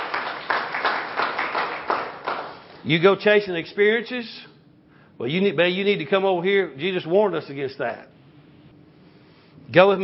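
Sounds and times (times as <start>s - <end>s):
congregation clapping hands in praise during a church sermon: 0.0s - 2.9s
speech: 2.8s - 4.5s, 5.2s - 8.1s, 9.7s - 10.0s.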